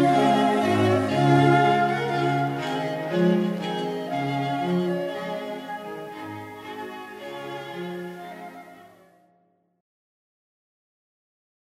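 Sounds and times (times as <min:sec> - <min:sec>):
trumpet: 0:00.0 - 0:09.2.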